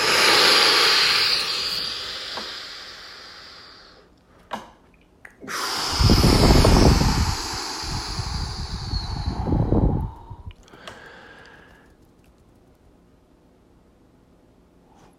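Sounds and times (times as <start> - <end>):
deep breath in: 0.0 - 4.1, 5.5 - 11.9.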